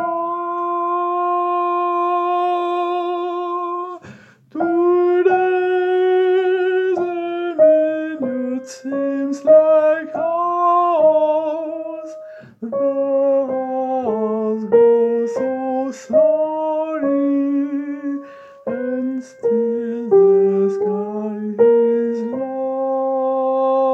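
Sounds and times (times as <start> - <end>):
soprano singing: 0.0 - 23.9.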